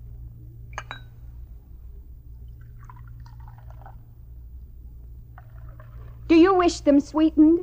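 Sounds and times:
steady low hum: 0:00.0 - 0:07.6
china clinking: 0:00.8 - 0:01.2
coffee pouring from an urn spigot: 0:02.5 - 0:04.0, 0:05.3 - 0:06.3
speech: 0:06.4 - 0:07.6.

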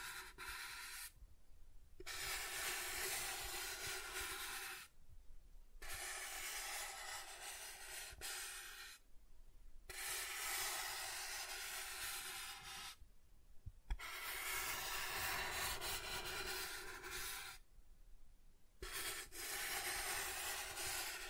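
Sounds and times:
soft tracing strokes across a surface: 0:00.0 - 0:01.2, 0:02.0 - 0:05.0, 0:05.8 - 0:09.1, 0:09.8 - 0:13.0, 0:13.9 - 0:17.6, 0:18.8 - 0:21.2.

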